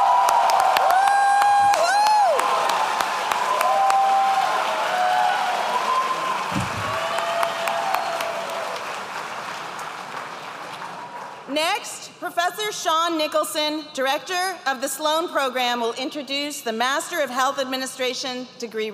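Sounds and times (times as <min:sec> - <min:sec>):
audience applause for a graduate: 0:00.0 - 0:11.5
speech: 0:12.7 - 0:18.9.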